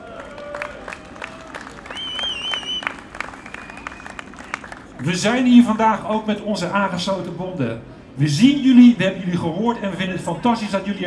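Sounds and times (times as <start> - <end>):
crowd whistling at a May Day rally: 0.0 - 5.0
audience applause at a May Day rally of a trade union federation: 0.0 - 5.4
speech: 5.0 - 11.0.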